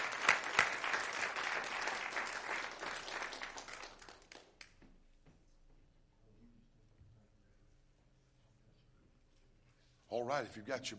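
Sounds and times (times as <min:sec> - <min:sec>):
church congregation clapping to welcome a preacher: 0:00.0 - 0:04.9
speech: 0:10.2 - 0:10.9.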